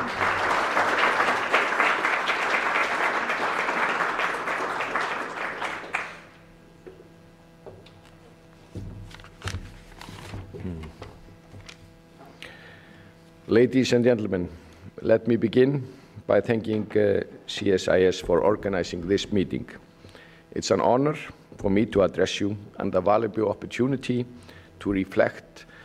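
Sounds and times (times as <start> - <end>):
audience applause welcoming speaker: 0.0 - 6.5
speech: 13.5 - 19.8, 20.5 - 25.7.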